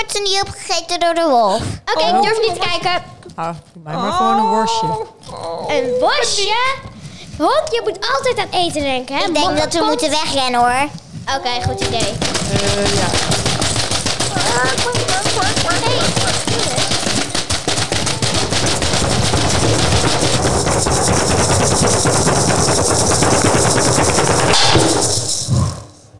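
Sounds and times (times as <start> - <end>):
speech: 0.1 - 13.4, 14.3 - 16.2
laughter: 1.9 - 10.8, 11.6 - 25.1
thunder from a lightning strike: 12.2 - 26.0.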